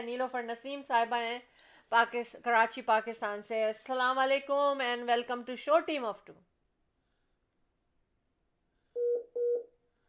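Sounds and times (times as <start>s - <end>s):
speech: 0.0s - 6.5s
short electronic tones of a caller's phone line dropping during a radio call-in: 9.0s - 9.7s.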